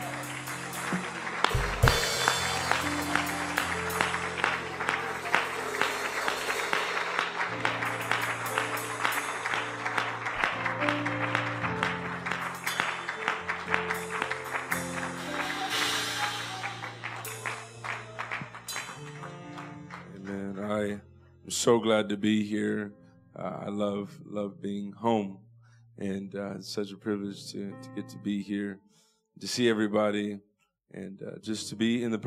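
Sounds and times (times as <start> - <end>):
audience clapping hands: 0.0 - 20.8
speech: 21.6 - 25.4, 26.0 - 32.2.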